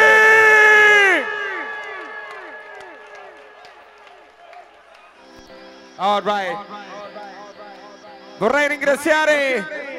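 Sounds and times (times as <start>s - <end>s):
audience applause: 0.7s - 5.5s
speech: 6.0s - 6.9s, 8.4s - 9.8s.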